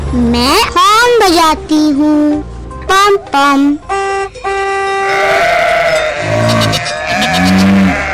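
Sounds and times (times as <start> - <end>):
speech: 0.2 - 0.6, 1.3 - 5.6
goats bleating on the road: 5.0 - 8.1.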